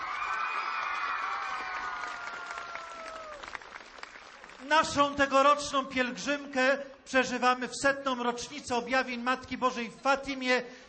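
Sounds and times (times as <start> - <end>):
children applauding and cheering: 0.0 - 4.7
speech: 4.6 - 10.8.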